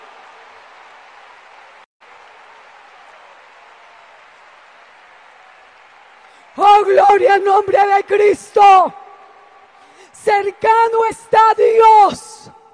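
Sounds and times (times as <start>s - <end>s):
large audience applause: 0.0s - 8.0s
speech: 6.6s - 9.0s, 10.3s - 12.3s.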